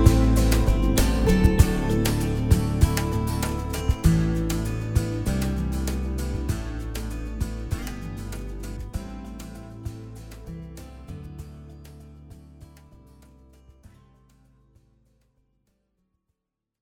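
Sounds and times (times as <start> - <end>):
rock music: 0.0 - 10.2.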